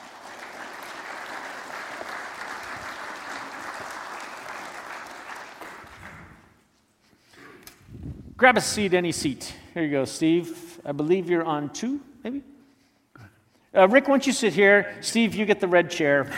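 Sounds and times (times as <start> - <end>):
audience applause: 0.0 - 6.5
speech: 8.4 - 12.5, 13.7 - 16.3.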